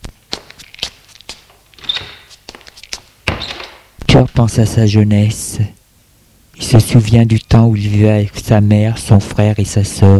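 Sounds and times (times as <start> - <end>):
soft irregular footsteps: 0.0 - 4.8
knock and shuffle of a door being handled: 3.2 - 3.9
speech: 4.2 - 5.8, 6.6 - 10.1.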